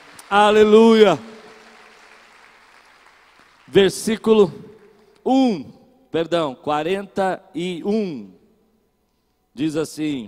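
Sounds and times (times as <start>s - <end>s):
audience applauding: 0.0s - 4.5s
speech: 0.3s - 1.3s, 3.7s - 4.6s, 5.2s - 8.4s, 9.6s - 10.2s.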